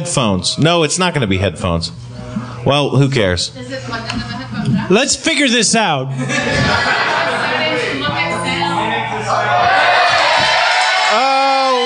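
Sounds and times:
speech: 0.0s - 7.4s
laughter: 6.1s - 10.4s
audience cheering: 9.2s - 11.8s.

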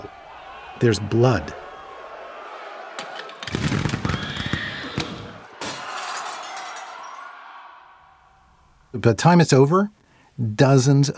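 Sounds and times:
roaring crowd clamor: 0.0s - 8.6s
speech: 0.8s - 1.6s, 8.9s - 11.1s
gunshots fired into a crowd: 3.4s - 5.9s.

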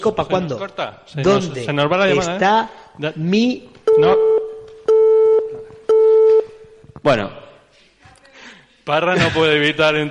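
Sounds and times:
speech: 0.0s - 4.3s, 7.0s - 7.4s, 8.8s - 10.0s
telephone busy tone: 3.9s - 6.5s.

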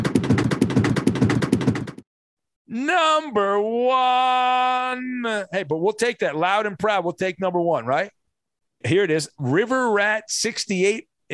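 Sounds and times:
drum roll sound effect: 0.0s - 2.0s
speech: 2.8s - 8.2s, 8.8s - 11.3s.

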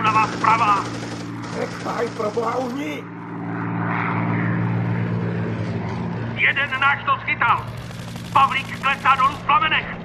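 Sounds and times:
fighter plane propeller engine droning: 0.0s - 10.0s
speech: 0.3s - 3.2s, 6.4s - 10.0s.

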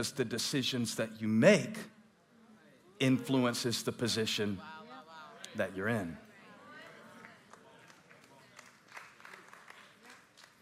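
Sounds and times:
speech: 0.0s - 2.0s, 3.0s - 4.8s, 5.5s - 6.2s
half-hearted audience clapping: 7.2s - 10.6s.

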